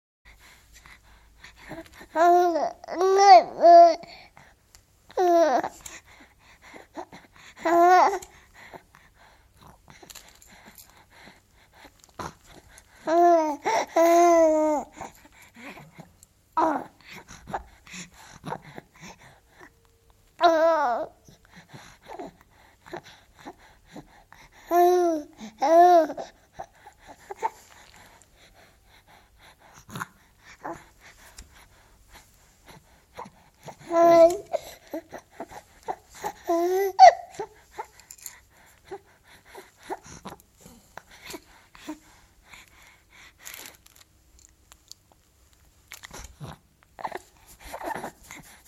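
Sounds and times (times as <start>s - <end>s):
baby: 1.6s - 4.3s, 5.1s - 8.9s, 9.6s - 19.8s, 20.4s - 27.9s, 32.7s - 42.6s, 46.0s - 48.6s.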